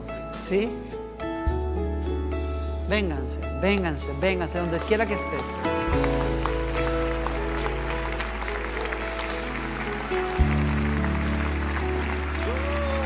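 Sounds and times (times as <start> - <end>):
sustained keyboard-like chords: 0.0 - 13.0
speech: 0.5 - 0.9, 2.9 - 6.2
audience applause: 5.9 - 13.0.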